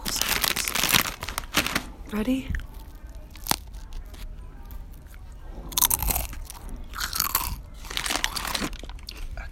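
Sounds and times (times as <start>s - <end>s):
chips from a bag crunching: 0.0s - 1.9s, 2.5s - 9.3s
speech: 2.1s - 2.7s
chewing chips: 2.5s - 9.3s.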